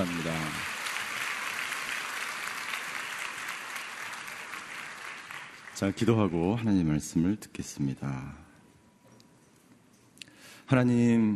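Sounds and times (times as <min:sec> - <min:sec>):
audience applause: 0:00.0 - 0:06.6
speech: 0:05.8 - 0:08.4, 0:10.7 - 0:11.3.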